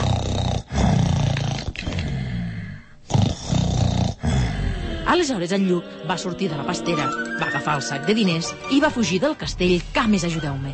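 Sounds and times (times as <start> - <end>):
giant's loud deep rumbling snoring: 0.0 - 5.1
speech: 5.1 - 10.7.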